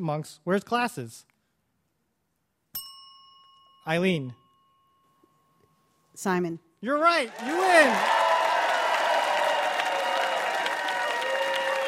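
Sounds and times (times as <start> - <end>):
speech: 0.0 - 1.3, 3.9 - 4.4, 6.2 - 8.2
audience applause: 7.3 - 11.8.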